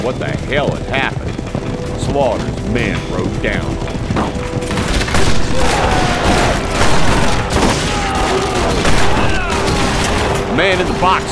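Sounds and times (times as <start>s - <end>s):
speech: 0.0s - 1.4s, 2.1s - 4.5s, 10.6s - 11.3s
rifle gunfire in a shootout: 4.5s - 11.3s.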